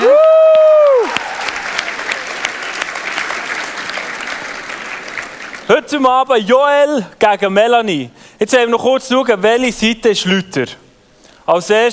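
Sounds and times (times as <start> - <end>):
audience applause: 0.0 - 5.7
speech: 5.9 - 10.8, 11.5 - 11.9.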